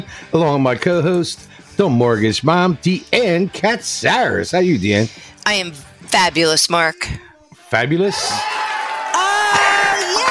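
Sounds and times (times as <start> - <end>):
speech: 0.0 - 8.6
crowd cheering sound effect: 8.0 - 10.2.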